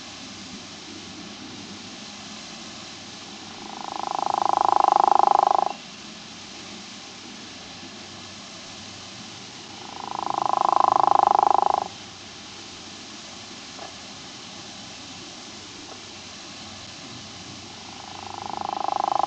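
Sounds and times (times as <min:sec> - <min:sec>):
true frog of family Ranidae calling: 0:03.3 - 0:05.8, 0:09.6 - 0:12.0, 0:17.7 - 0:19.2.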